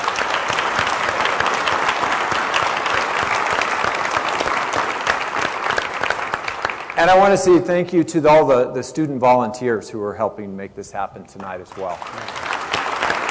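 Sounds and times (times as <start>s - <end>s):
audience round of applause: 0.0s - 7.6s, 11.5s - 13.2s
speech: 7.0s - 12.4s.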